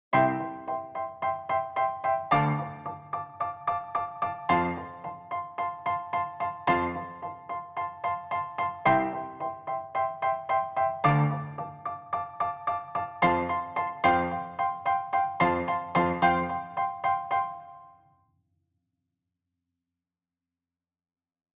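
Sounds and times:
piano: 0:00.0 - 0:18.1.

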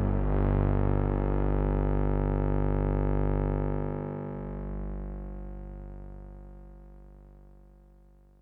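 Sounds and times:
Moog Muse synthesizer with overdrive: 0:00.0 - 0:06.5.

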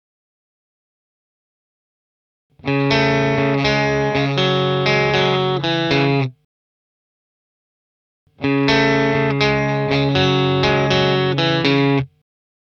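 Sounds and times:
electric guitar through Boss Katana Artist amplifier with EQ variations: 0:02.6 - 0:06.4, 0:08.4 - 0:12.1.

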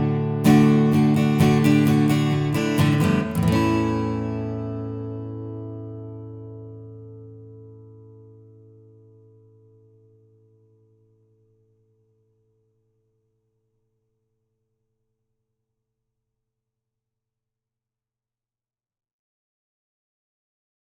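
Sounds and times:
acoustic guitar recorded with sE Electronics T1 condenser microphone: 0:00.0 - 0:11.5.

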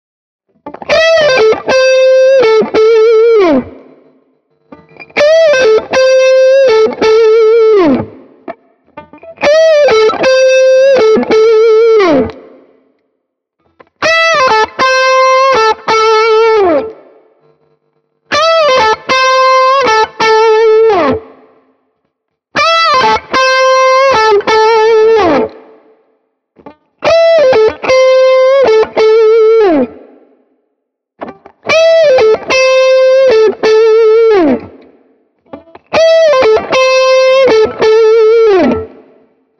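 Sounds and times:
Ibanez AR520HFM electric guitar licks at mid gain: 0:00.6 - 0:12.8, 0:13.6 - 0:17.3, 0:18.3 - 0:21.7, 0:22.6 - 0:25.9, 0:26.6 - 0:30.4, 0:31.2 - 0:39.5.

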